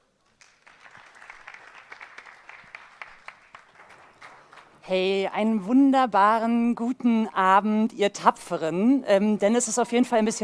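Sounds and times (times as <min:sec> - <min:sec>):
audience applause: 0:00.0 - 0:04.8
speech: 0:04.9 - 0:10.4.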